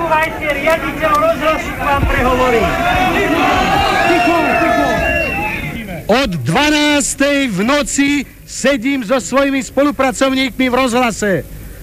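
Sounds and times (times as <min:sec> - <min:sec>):
large crowd gathered outside radio building roaring and chanting: 0:00.0 - 0:05.8
speech: 0:00.4 - 0:04.6, 0:06.1 - 0:11.6.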